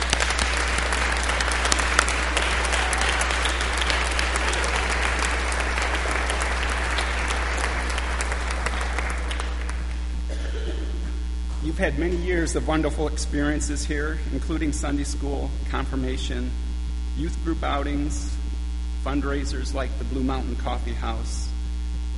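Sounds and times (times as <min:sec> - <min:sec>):
audience applause: 0:00.0 - 0:10.1
low steady hum: 0:00.0 - 0:22.1
speech: 0:11.8 - 0:16.6, 0:17.2 - 0:18.4, 0:19.0 - 0:21.5.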